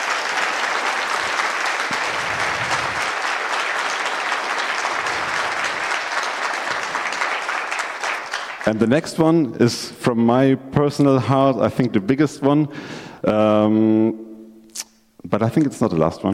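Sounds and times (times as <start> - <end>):
round of applause: 0.0 - 9.0
speech: 8.7 - 14.2, 15.3 - 16.3.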